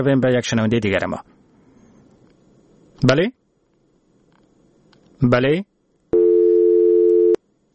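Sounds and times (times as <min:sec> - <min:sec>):
speech: 0:00.0 - 0:01.4, 0:03.0 - 0:03.4, 0:05.2 - 0:05.7
telephone busy tone after a dropped listener call: 0:06.2 - 0:07.4.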